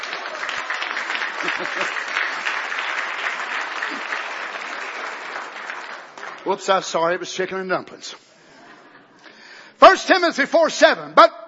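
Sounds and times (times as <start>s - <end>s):
audience hand clapping: 0.0s - 7.2s
speech: 1.4s - 2.0s, 6.4s - 8.2s, 9.9s - 11.4s.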